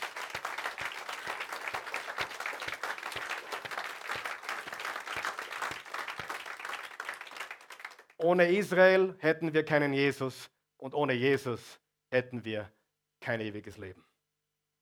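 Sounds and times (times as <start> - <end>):
audience applauding: 0.0 - 8.2
speech: 8.2 - 14.1.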